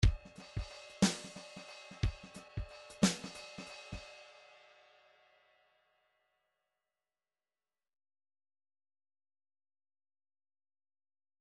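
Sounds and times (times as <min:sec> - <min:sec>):
rhythmic groove in three-four time: 0:00.0 - 0:04.1.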